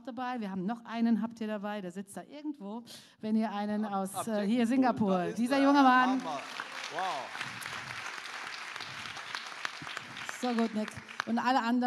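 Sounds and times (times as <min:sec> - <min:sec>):
speech: 0:00.0 - 0:07.6, 0:10.4 - 0:11.8
church congregation applauding for its pastors after a Sunday morning service: 0:05.5 - 0:11.8.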